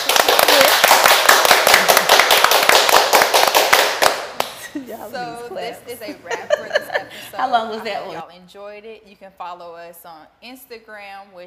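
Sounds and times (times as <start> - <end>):
clapping: 0.0 - 4.6
speech: 5.0 - 11.4
laughter: 6.0 - 8.2.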